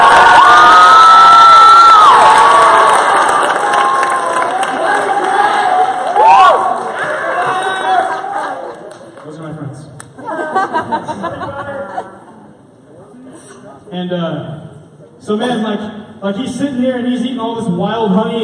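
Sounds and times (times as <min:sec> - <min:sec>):
student crowd cheering at a Granbury High School rally: 0:00.0 - 0:08.7
laughter: 0:07.2 - 0:09.1, 0:10.2 - 0:12.5
speech: 0:15.3 - 0:18.4.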